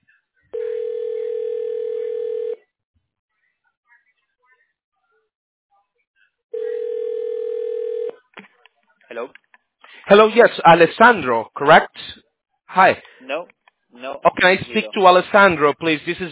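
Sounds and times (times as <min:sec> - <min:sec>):
telephone ringback tones while a call is transferred: 0:00.6 - 0:02.6, 0:06.6 - 0:08.2
speech: 0:10.1 - 0:16.3.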